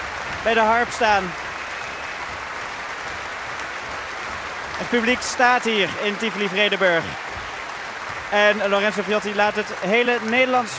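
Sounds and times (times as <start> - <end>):
orchestra members applauding a violin soloist at Tivoli-Vredenburg: 0.0 - 10.7
speech: 0.4 - 1.4, 4.8 - 7.2, 8.3 - 10.7.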